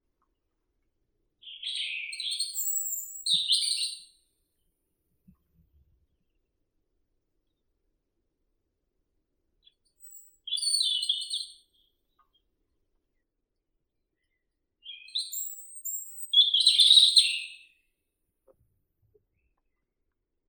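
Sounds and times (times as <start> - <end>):
robin Erithacus rubecula singing: 1.4 - 4.1, 9.6 - 12.3, 14.8 - 17.7.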